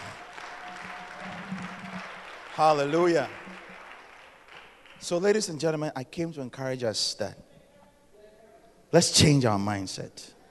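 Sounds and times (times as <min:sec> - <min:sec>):
audience clapping hands: 0:00.0 - 0:05.4
speech: 0:02.6 - 0:03.4, 0:05.0 - 0:07.4, 0:08.9 - 0:10.4.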